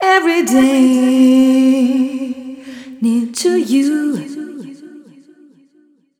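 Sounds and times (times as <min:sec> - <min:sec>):
female vocals: 0:00.0 - 0:05.5.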